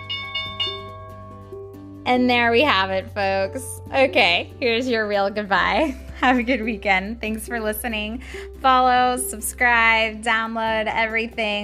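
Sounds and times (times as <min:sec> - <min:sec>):
stock market closing bell ringing: 0:00.0 - 0:01.8
speech: 0:02.1 - 0:11.6.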